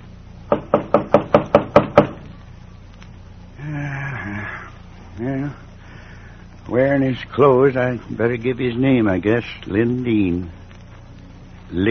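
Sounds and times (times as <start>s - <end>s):
knocking at a door: 0.5s - 2.2s
speech: 0.7s - 1.0s, 6.8s - 10.6s.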